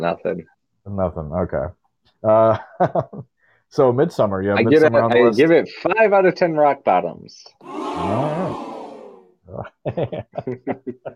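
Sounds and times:
speech: 0:00.0 - 0:08.7, 0:09.5 - 0:11.1
excited crowd cheering: 0:07.6 - 0:09.3.

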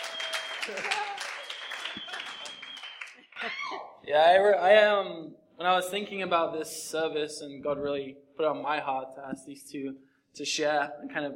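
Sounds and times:
audience clapping: 0:00.0 - 0:03.6
speech: 0:00.7 - 0:01.2, 0:04.1 - 0:11.3.

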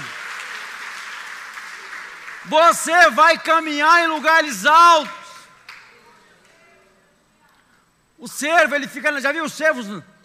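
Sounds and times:
audience applauding: 0:00.0 - 0:03.2
speech: 0:02.4 - 0:05.2, 0:08.2 - 0:10.1.

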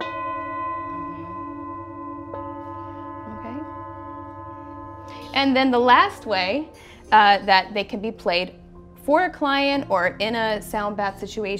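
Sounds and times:
Tibetan singing bowls struck and ringing: 0:00.0 - 0:07.4
speech: 0:05.4 - 0:11.5.

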